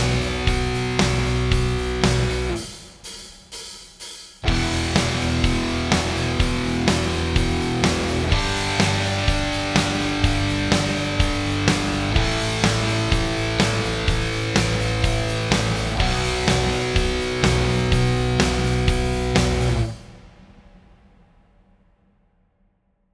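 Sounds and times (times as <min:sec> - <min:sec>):
backing track: 0:00.0 - 0:02.6, 0:04.4 - 0:20.0.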